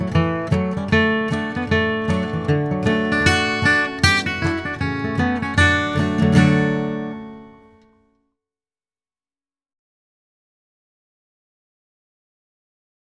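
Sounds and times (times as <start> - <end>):
bluegrass guitar playing a fiddle tune in C: 0.0 - 7.8.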